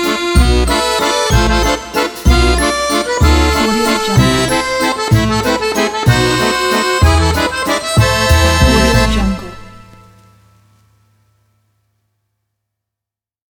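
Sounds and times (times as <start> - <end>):
French waltz music: 0.0 - 10.5.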